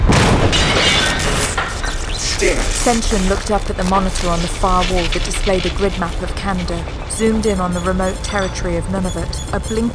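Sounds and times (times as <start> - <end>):
massive stone column crashing onto console: 0.0 - 2.6
speech: 2.8 - 9.9.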